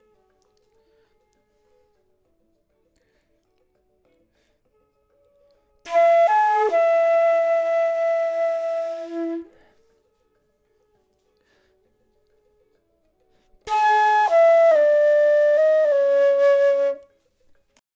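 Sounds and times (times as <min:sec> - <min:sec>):
flute: 0:05.9 - 0:10.0, 0:13.7 - 0:17.4.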